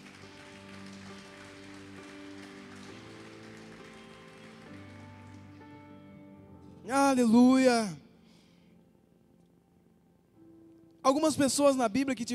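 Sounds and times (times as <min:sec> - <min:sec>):
audience applauding: 0:00.0 - 0:05.8
speech: 0:06.9 - 0:08.0, 0:11.1 - 0:12.3.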